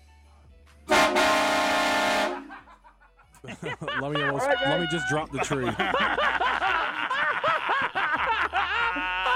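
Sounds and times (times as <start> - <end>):
truck air horn blasts as a trucker salute: 0.9 - 2.6
laughter: 2.3 - 9.3
speech: 4.0 - 6.6.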